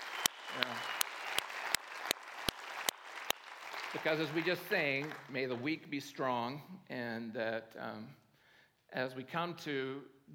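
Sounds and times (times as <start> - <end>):
audience applause: 0.0 - 5.6
sharp loud claps: 0.0 - 5.8
speech: 3.9 - 8.2, 8.9 - 10.3.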